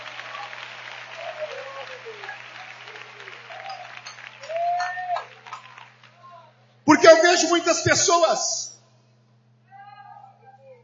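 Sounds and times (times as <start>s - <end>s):
audience applauding: 0.0s - 6.3s
speech: 7.7s - 8.7s.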